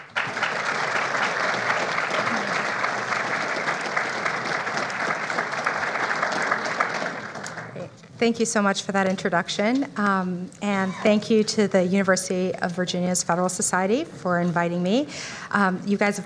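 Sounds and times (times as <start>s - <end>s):
audience applause welcoming a judge and a panel of speakers: 0.0s - 7.8s
speech: 8.2s - 16.2s.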